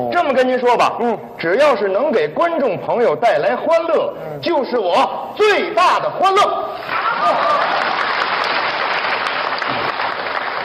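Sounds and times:
speech: 0.0 - 7.7
audience applause: 6.9 - 10.6.

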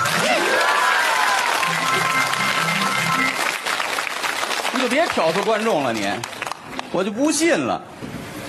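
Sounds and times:
whoops: 0.0 - 2.3
audience applause: 0.0 - 6.9
speech: 4.8 - 6.3, 6.9 - 8.0.

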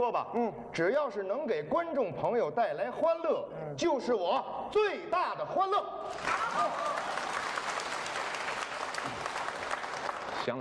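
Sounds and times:
speech: 0.0 - 7.2
audience applause: 6.1 - 10.5.

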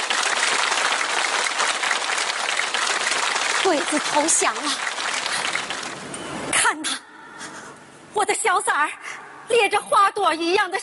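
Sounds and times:
warm audience applause: 0.0 - 6.1
speech: 3.6 - 4.9, 8.2 - 10.8.

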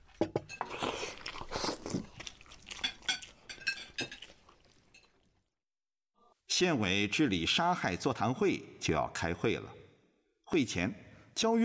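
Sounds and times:
person slurping and gulping from a bowl of dusty liquid: 0.5 - 5.6
speech: 6.6 - 9.8, 10.5 - 11.6.

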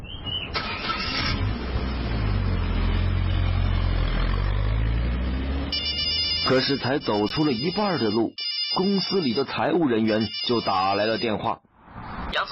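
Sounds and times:
car engine starting and rumbling as the car drives off: 0.0 - 7.3
speech: 6.5 - 11.7, 12.3 - 12.5.

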